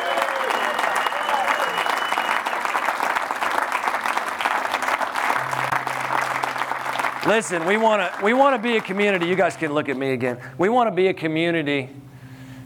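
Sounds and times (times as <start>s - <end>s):
audience cheering: 0.0s - 9.9s
speech: 7.2s - 12.0s.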